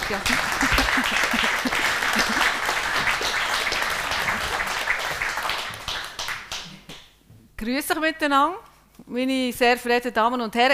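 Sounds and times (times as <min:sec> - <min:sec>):
crowd applauding: 0:00.0 - 0:07.0
speech: 0:00.1 - 0:01.2, 0:07.6 - 0:10.7
laughter: 0:00.3 - 0:03.2.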